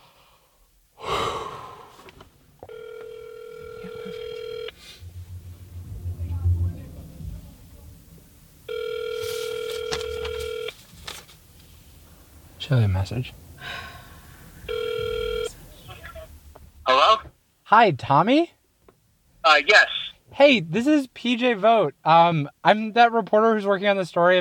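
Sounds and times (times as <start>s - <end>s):
sharp breath: 0.0s - 2.1s, 4.8s - 5.1s, 13.6s - 14.6s
phone ringing on a call: 2.6s - 4.8s, 8.7s - 10.8s, 14.6s - 15.6s
low rumble: 3.5s - 16.9s
speech: 12.7s - 13.4s, 17.7s - 18.6s, 19.5s - 24.3s.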